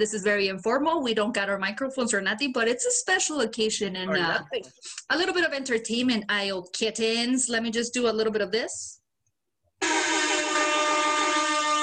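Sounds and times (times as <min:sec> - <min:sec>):
speech: 0:00.0 - 0:09.0
Rasta air horn sound effect: 0:09.8 - 0:11.8.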